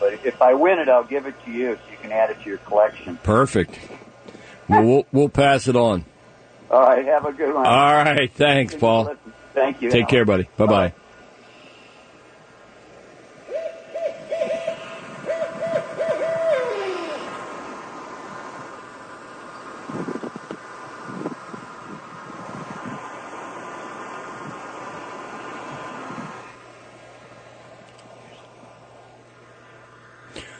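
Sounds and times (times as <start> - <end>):
steady rushing noise: 0.0 - 30.5
speech: 0.2 - 4.0, 4.7 - 6.1, 6.7 - 11.0
barred owl hooting: 13.4 - 17.6.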